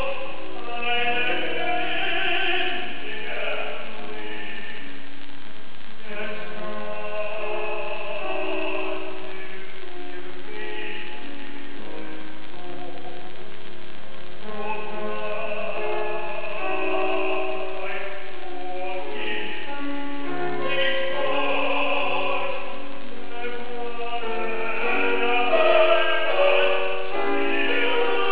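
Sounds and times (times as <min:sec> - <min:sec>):
singer at a concert in Tokyo: 0:00.0 - 0:05.1, 0:06.0 - 0:28.3.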